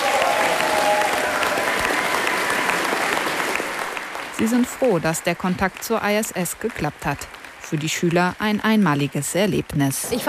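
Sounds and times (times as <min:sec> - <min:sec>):
students and teachers cheering loudly: 0:00.0 - 0:03.9
speech: 0:04.4 - 0:10.2.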